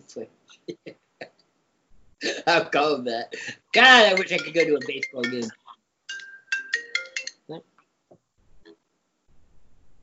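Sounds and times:
speech: 0:00.1 - 0:01.0, 0:02.4 - 0:05.6, 0:07.5 - 0:07.7
FaceTime call ringtone on a phone: 0:03.8 - 0:07.4.

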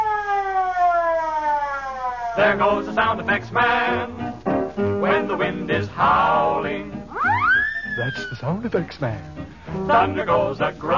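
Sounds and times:
fire engine siren sound effect: 0:00.0 - 0:02.6, 0:07.1 - 0:08.4
speech: 0:02.4 - 0:04.3, 0:05.0 - 0:06.9, 0:08.0 - 0:10.9.

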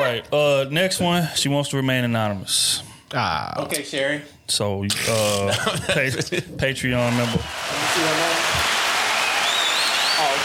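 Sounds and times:
speech: 0:00.1 - 0:08.4
audience applause: 0:07.0 - 0:10.4.

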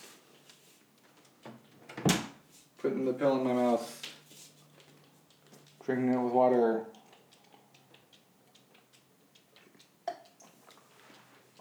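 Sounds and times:
door shutting: 0:01.5 - 0:02.4
speech: 0:02.8 - 0:04.0, 0:05.9 - 0:07.0.

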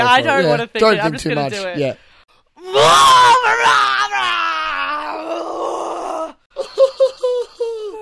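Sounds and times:
speech: 0:00.2 - 0:02.0, 0:02.6 - 0:04.5
person imitating an angry roar: 0:02.6 - 0:06.4.

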